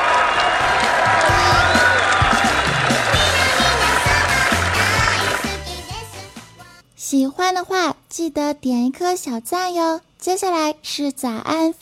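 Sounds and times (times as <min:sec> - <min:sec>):
applause: 0:00.0 - 0:05.6
speech: 0:07.1 - 0:11.8.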